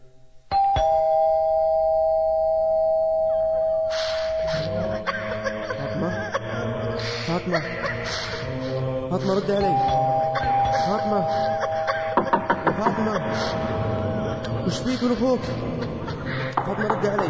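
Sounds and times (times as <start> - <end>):
doorbell ringing: 0.5 - 5.0, 9.6 - 12.2
laughter: 4.4 - 17.2
speech: 9.1 - 10.2, 10.8 - 11.7, 12.8 - 16.0, 16.7 - 17.2.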